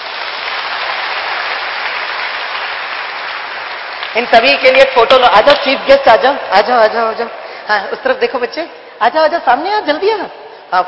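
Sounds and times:
audience clapping: 0.0s - 5.9s
speech: 4.2s - 10.8s.

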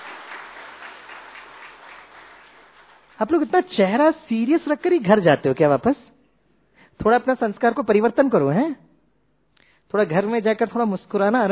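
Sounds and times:
audience applause: 0.0s - 3.2s
speech: 3.2s - 6.1s, 7.0s - 8.8s, 9.9s - 11.5s.

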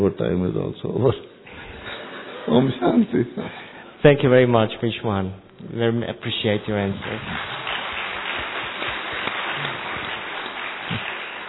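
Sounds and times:
speech: 0.0s - 1.4s, 2.5s - 7.6s
audience clapping: 6.6s - 11.4s.

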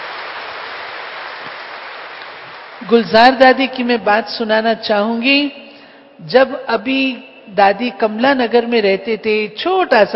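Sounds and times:
audience applauding: 0.0s - 2.8s
speech: 2.8s - 5.6s, 6.2s - 10.1s.

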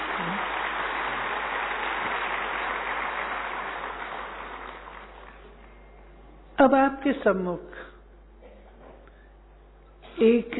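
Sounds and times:
audience clapping: 0.0s - 5.7s
speech: 6.6s - 7.9s, 10.2s - 10.5s.

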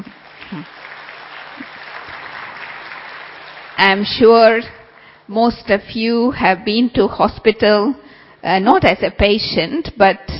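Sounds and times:
audience clapping: 0.0s - 5.1s
speech: 3.8s - 10.3s.

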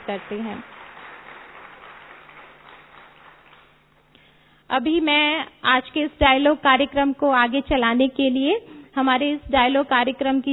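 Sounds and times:
audience clapping to welcome a guest at a Rotaract dialogue programme: 0.0s - 4.2s
speech: 0.1s - 0.8s, 4.7s - 10.5s.

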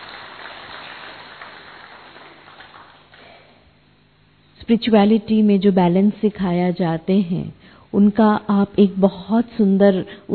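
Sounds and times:
audience applause welcoming a speaker at a spiritual talk: 0.0s - 3.5s
speech: 4.7s - 10.3s.

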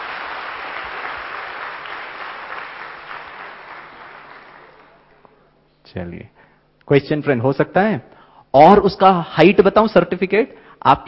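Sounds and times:
crowd applause: 0.0s - 5.2s
speech: 5.9s - 11.0s.

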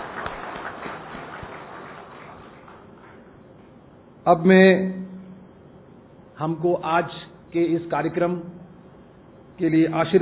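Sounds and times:
loud audience applause: 0.0s - 3.3s
speech: 4.2s - 5.0s, 6.4s - 8.6s, 9.6s - 10.2s.

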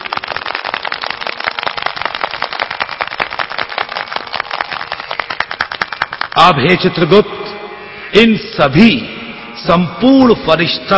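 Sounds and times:
audience applause: 0.0s - 6.4s
speech: 6.4s - 7.3s, 8.1s - 10.9s.

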